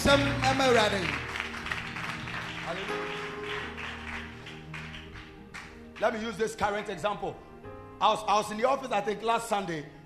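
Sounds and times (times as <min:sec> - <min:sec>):
audience clapping hands: 0:00.0 - 0:06.8
speech: 0:00.1 - 0:01.3, 0:02.7 - 0:03.2, 0:06.0 - 0:10.0.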